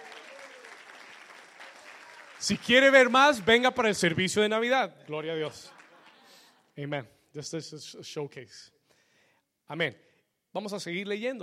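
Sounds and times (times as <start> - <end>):
audience applauding: 0.0 - 6.5
speech: 2.4 - 5.8, 6.8 - 8.8, 9.7 - 11.4.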